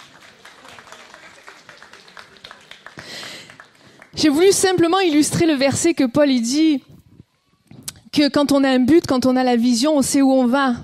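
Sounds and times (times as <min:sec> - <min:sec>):
audience applause: 0:00.0 - 0:04.5
speech: 0:04.2 - 0:06.9, 0:08.2 - 0:10.8.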